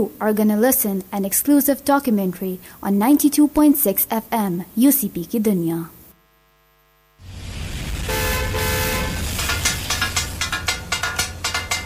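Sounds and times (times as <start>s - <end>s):
speech: 0.0s - 6.0s
takatak cooking clatter on griddle: 9.0s - 11.8s.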